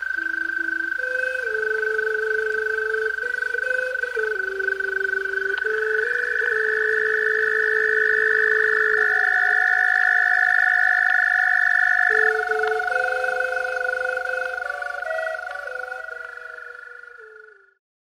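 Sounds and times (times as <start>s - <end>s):
late night serenade: 0.1s - 17.8s.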